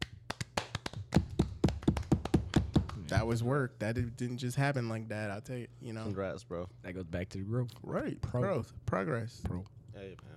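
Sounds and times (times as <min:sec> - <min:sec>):
hands clapping: 0:00.0 - 0:03.2
speech: 0:03.1 - 0:10.3.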